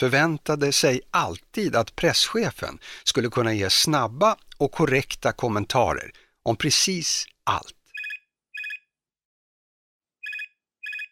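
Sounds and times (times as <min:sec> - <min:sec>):
speech: 0:00.0 - 0:07.8
mobile phone ringing: 0:07.9 - 0:08.9, 0:10.2 - 0:11.1.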